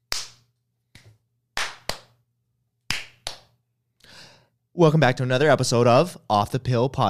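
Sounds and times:
hands clapping: 0.0s - 2.2s, 2.9s - 3.6s
speech: 4.8s - 7.0s.

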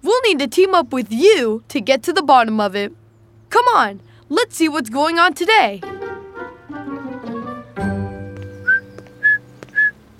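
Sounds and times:
speech: 0.3s - 6.0s
person whistling an imitation of bird song: 8.5s - 10.1s.

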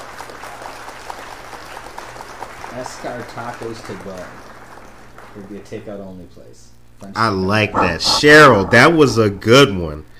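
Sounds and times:
canned applause sound effect: 0.0s - 5.8s
speech: 2.8s - 4.5s, 5.3s - 10.1s.

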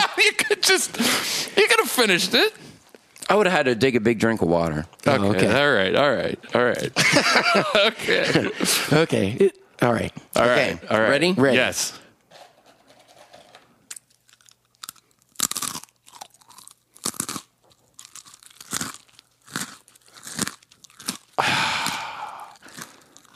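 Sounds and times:
laughter: 0.0s - 1.2s, 6.9s - 9.0s
speech: 0.2s - 2.7s, 3.3s - 12.0s
crunchy pretzel being chewed: 13.9s - 23.3s.

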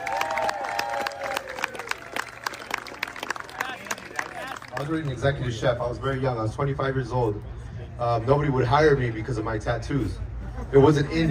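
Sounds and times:
excited whoops and cheers: 0.0s - 4.6s
audience applause: 0.0s - 5.2s
speech: 4.8s - 11.3s.

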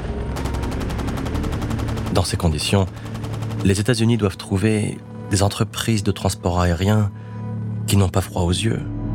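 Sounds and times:
gunfire sound effect: 0.2s - 4.1s
speech: 2.1s - 3.1s, 3.7s - 7.3s, 7.9s - 9.0s.

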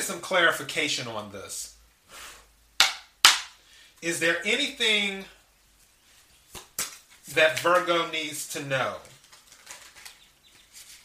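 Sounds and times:
speech: 0.0s - 2.3s, 4.0s - 5.4s, 7.3s - 9.1s
tarot cards being shuffled: 6.5s - 7.9s, 8.9s - 11.0s.

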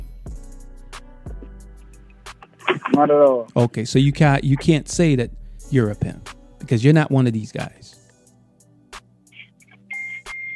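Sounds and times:
speech: 3.0s - 8.0s
short high-pitched electronic beeps: 9.9s - 10.5s.

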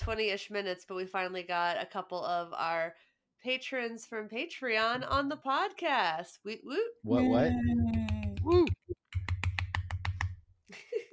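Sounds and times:
speech: 0.0s - 8.7s
short burst of voices: 7.1s - 7.8s
light sharp claps: 7.9s - 10.4s.

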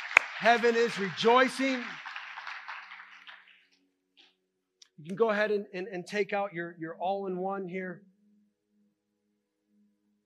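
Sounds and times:
audience hand clapping: 0.0s - 3.8s
speech: 0.2s - 2.0s, 5.0s - 8.1s.

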